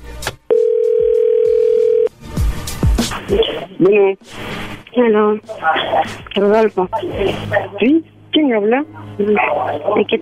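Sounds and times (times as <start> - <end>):
telephone call tone: 0.5 - 2.1
speech: 3.3 - 10.1.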